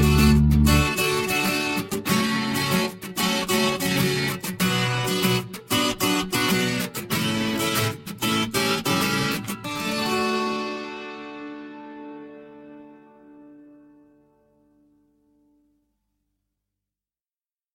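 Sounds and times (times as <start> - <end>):
fast folk tune without flabiol: 0.0 - 12.6.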